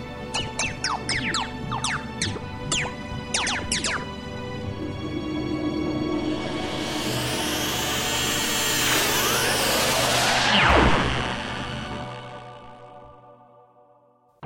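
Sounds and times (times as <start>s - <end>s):
fictional paradise machine powering up with chirping electronic sweeps: 0.0s - 4.2s, 6.2s - 11.4s
loud rising whoosh: 3.4s - 12.9s.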